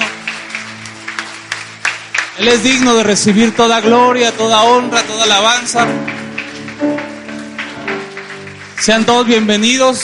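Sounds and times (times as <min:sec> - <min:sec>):
audience applause: 0:00.0 - 0:10.0
speech: 0:02.4 - 0:06.2, 0:08.8 - 0:10.0.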